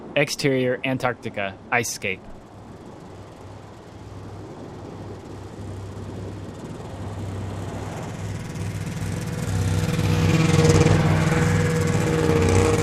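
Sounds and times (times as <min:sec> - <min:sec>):
speech: 0:00.2 - 0:02.4
two vehicles ripping across hard flat ice: 0:06.0 - 0:12.8.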